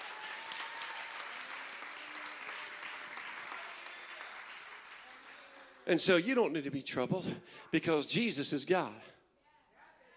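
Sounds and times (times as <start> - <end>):
audience clapping: 0.0 - 6.4
speech: 5.8 - 9.2.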